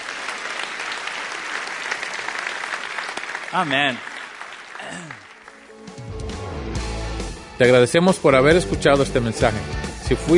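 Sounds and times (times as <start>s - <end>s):
audience applause: 0.0s - 6.2s
speech: 3.5s - 4.1s, 4.9s - 5.3s, 7.6s - 10.3s.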